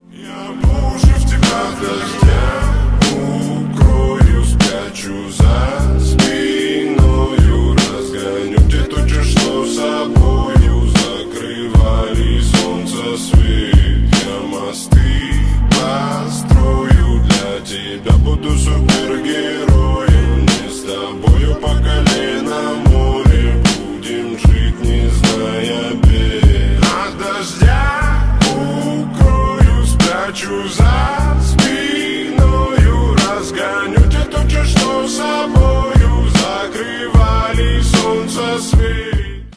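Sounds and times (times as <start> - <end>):
slowed reverb music: 0.0 - 39.4.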